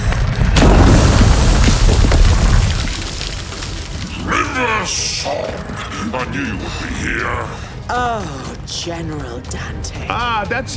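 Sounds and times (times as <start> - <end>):
ground shifting rumble: 0.0 - 6.1
speech: 6.3 - 10.7.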